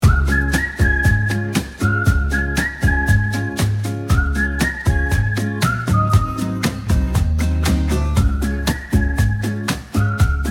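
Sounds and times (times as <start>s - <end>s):
music: 0.0s - 10.4s.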